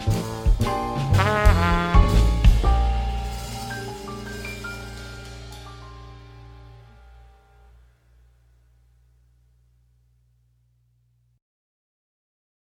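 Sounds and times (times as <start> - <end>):
trumpet solo: 0.0 - 2.8.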